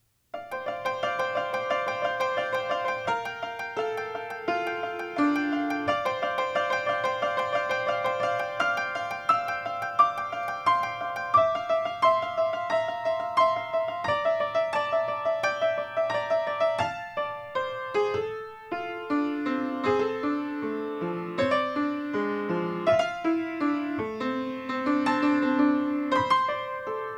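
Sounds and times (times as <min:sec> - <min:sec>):
piano: 0:00.0 - 0:27.1.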